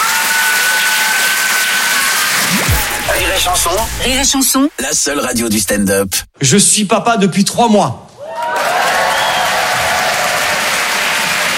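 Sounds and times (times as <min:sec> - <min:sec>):
live audience applause: 0:00.0 - 0:03.9, 0:08.3 - 0:11.5
speech: 0:03.4 - 0:08.1.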